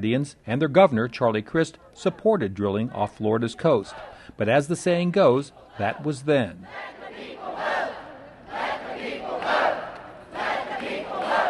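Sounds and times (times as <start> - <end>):
speech: 0.0 - 7.7
protesters chanting at a rally: 1.9 - 4.3, 5.2 - 11.4.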